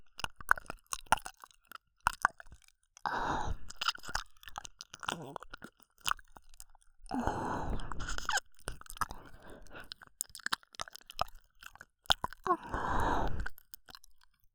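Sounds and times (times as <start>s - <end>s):
left ear licking: 0.1s - 14.4s.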